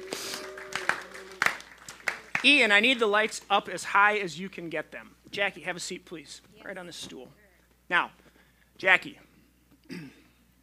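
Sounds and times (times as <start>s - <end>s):
scattered audience applause: 0.0s - 3.5s
faint steady hum: 0.0s - 10.6s
speech: 2.4s - 8.2s, 8.8s - 9.3s.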